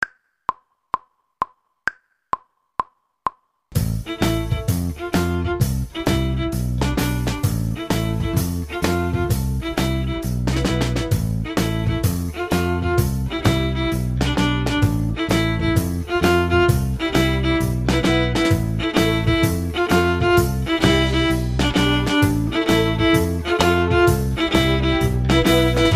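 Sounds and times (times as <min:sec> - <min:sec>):
violin section: 0:03.8 - 0:25.9.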